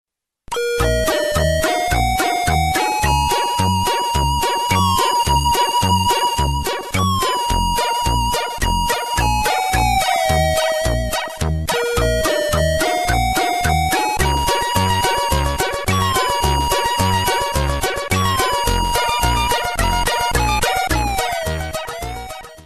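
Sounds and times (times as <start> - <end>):
8-bit ringtone: 0.5 - 22.6.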